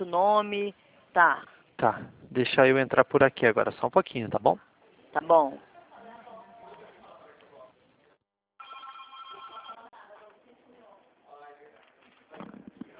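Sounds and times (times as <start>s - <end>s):
speech: 0.0s - 5.7s
telephone ringing: 8.6s - 9.9s.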